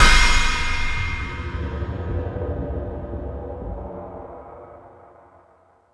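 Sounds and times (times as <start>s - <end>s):
metal drums on E-MU Pro-Cussion: 0.0s - 4.4s.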